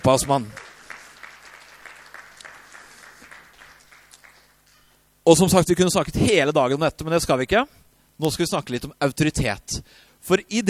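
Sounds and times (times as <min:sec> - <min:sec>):
speech: 0:00.0 - 0:00.6, 0:05.3 - 0:10.6
audience applause: 0:00.0 - 0:04.6.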